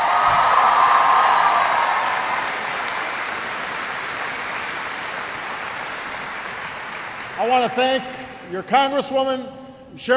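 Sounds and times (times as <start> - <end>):
large audience applause: 0.0 - 7.6
speech: 7.5 - 10.1.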